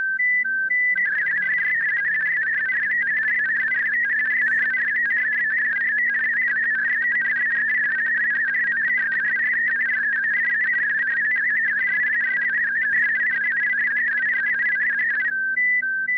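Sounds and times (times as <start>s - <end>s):
Olivia 8-tone 500 Hz digital radio CQ: 0.0s - 15.3s.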